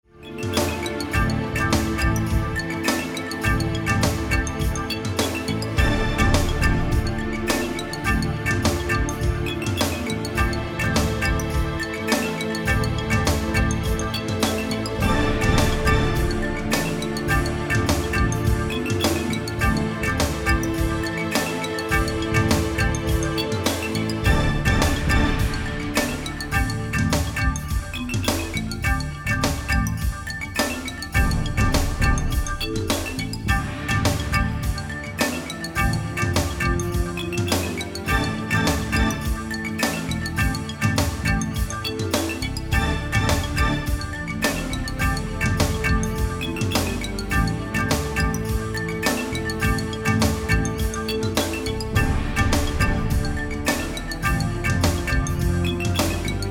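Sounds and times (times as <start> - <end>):
marimba: 0.1 - 56.4.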